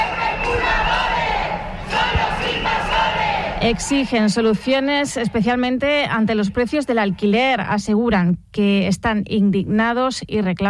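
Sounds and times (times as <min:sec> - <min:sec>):
protest crowd chanting in the rain in Badajoz: 0:00.0 - 0:05.6
speech: 0:03.6 - 0:10.6.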